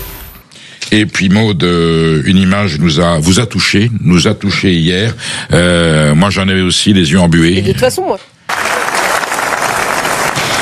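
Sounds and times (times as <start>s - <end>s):
speech: 0.9s - 8.3s
standing ovation cheering in the Palais du Festival de Cannes: 8.5s - 10.6s.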